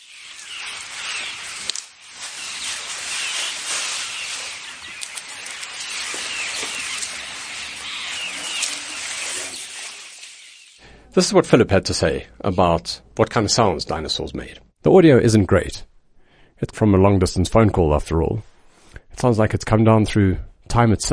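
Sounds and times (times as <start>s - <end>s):
herd of elephants grazing in the Sabi River Valley: 0.0s - 10.8s
rustling: 0.0s - 10.8s
speech: 11.1s - 15.9s, 16.6s - 18.5s, 19.2s - 21.1s.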